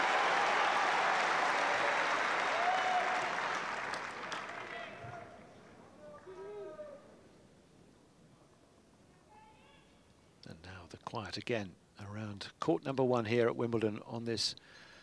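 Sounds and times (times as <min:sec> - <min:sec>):
crowd clapping and cheering: 0:00.0 - 0:06.4
speech: 0:10.6 - 0:14.8.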